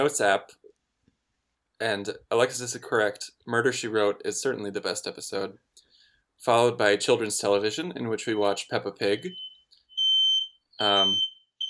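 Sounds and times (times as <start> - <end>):
speech: 0.0 - 0.6, 1.8 - 5.7, 6.4 - 9.4, 10.8 - 11.3
smoke alarm beeping: 9.1 - 11.6.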